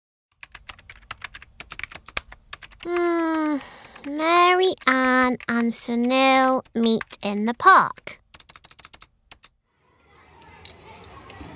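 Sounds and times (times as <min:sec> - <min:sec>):
typing on a computer keyboard while writing a screenplay: 0:00.3 - 0:09.5
speech: 0:02.8 - 0:08.2.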